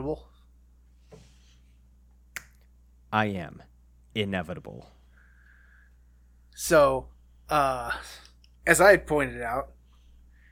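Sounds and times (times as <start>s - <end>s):
speech: 0.0s - 0.4s, 3.1s - 5.0s, 6.6s - 9.8s
finger snap: 2.3s - 2.7s.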